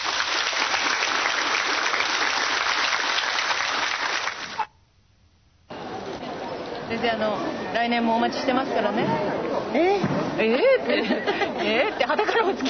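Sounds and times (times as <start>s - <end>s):
audience applause: 0.0s - 4.7s
speech: 7.0s - 12.6s
laughter: 10.4s - 12.6s.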